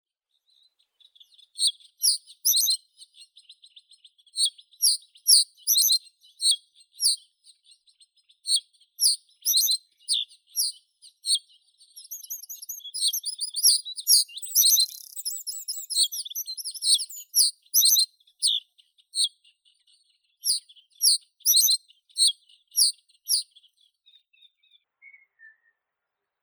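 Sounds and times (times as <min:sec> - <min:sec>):
common reed bunting Emberiza schoeniclus: 0:00.4 - 0:26.0.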